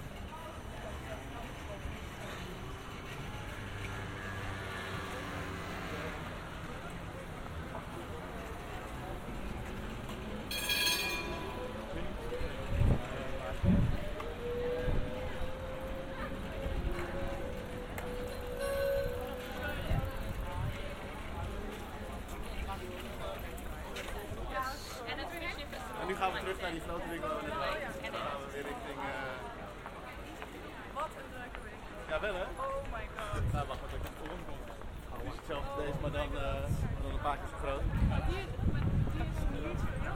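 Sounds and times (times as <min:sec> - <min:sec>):
street noise in Amsterdam: 0:00.0 - 0:40.1
rising whistle-like tone: 0:18.2 - 0:19.3.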